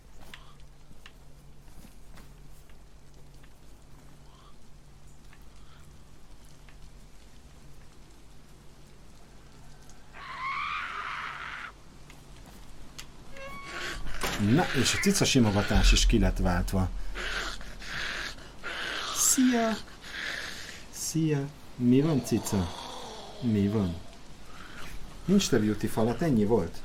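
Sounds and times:
rain starting to fall: 0:00.0 - 0:26.8
speech: 0:14.4 - 0:17.0, 0:21.1 - 0:22.8, 0:23.4 - 0:24.0, 0:25.3 - 0:26.8.

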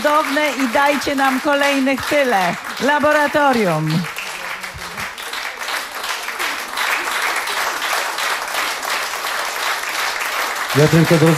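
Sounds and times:
speech: 0:00.0 - 0:04.2, 0:10.8 - 0:11.3
audience applause: 0:00.0 - 0:11.3.

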